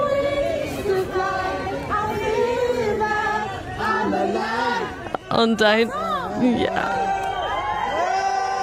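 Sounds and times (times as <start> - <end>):
crowd of fans singing together: 0.0 - 8.6
crowd of fans cheering: 1.9 - 8.6
speech: 5.4 - 7.0.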